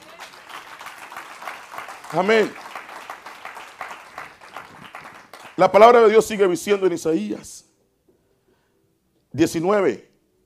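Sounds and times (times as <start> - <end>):
audience applause: 0.0 - 5.8
speech: 2.1 - 2.6, 5.6 - 7.6, 9.4 - 10.1.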